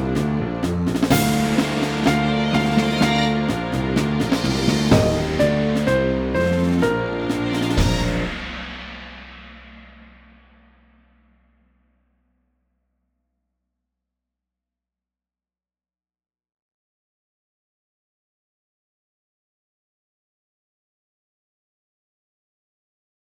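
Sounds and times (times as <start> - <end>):
trombone: 0.0 - 8.7
trumpet: 0.0 - 8.9.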